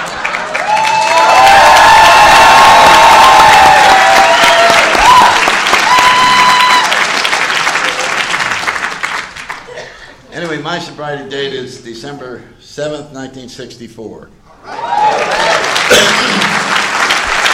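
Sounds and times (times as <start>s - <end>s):
audience applause: 0.0s - 9.8s, 14.7s - 17.5s
speech: 10.8s - 15.3s.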